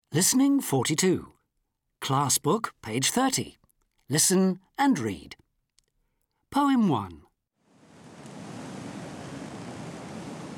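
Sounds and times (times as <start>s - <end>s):
speech: 0.1s - 1.4s, 2.1s - 5.4s, 6.5s - 7.2s
wind blowing: 7.7s - 10.5s.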